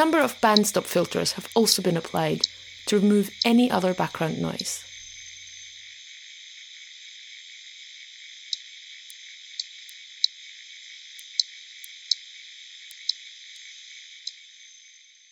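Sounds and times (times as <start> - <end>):
speech: 0.0 - 4.9
slowed-down harbour porpoise echolocation clicks: 0.0 - 5.6, 8.5 - 10.4, 11.0 - 14.4.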